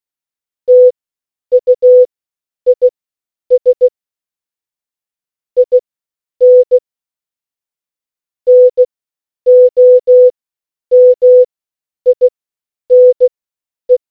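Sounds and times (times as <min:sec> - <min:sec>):
morse code beeps: 0:00.7 - 0:00.9, 0:01.5 - 0:02.1, 0:02.7 - 0:02.9, 0:03.5 - 0:03.9, 0:06.4 - 0:06.8, 0:08.5 - 0:08.9, 0:09.5 - 0:10.3, 0:10.9 - 0:11.5, 0:12.9 - 0:13.3.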